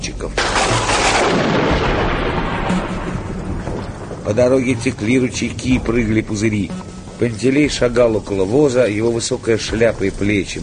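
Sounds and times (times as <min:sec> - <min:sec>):
thunderclap after lightning: 0:00.4 - 0:06.5
speech: 0:04.3 - 0:10.6.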